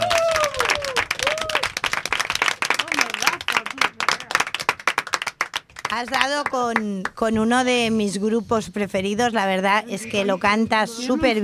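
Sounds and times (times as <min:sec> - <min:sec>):
applause: 0:00.0 - 0:07.2
speech: 0:05.9 - 0:11.4.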